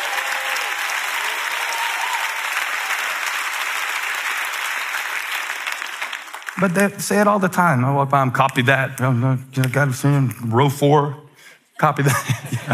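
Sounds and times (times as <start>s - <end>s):
audience clapping: 0.0s - 9.9s
speech: 6.6s - 11.2s, 11.8s - 12.7s
laughter: 11.8s - 12.7s.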